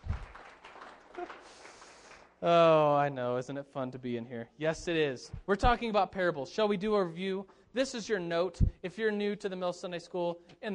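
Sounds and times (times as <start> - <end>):
audience clapping: 0.0 - 2.5
speech: 2.4 - 10.7.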